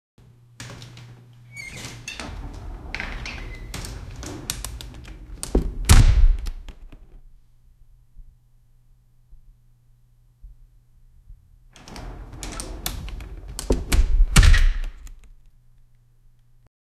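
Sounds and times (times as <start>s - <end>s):
door opening: 0.6s - 7.2s, 11.8s - 15.4s.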